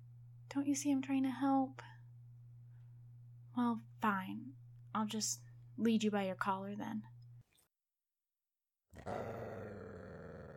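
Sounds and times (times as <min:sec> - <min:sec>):
speech: 0:00.5 - 0:02.0, 0:03.6 - 0:07.1, 0:09.0 - 0:09.6
dog growling: 0:09.0 - 0:10.5.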